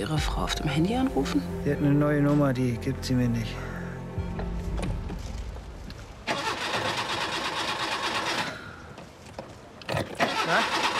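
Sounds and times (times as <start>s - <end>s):
speech: 0.0s - 3.8s
low rumble: 0.0s - 6.3s
car engine cranking without starting: 6.2s - 8.7s, 9.8s - 10.9s.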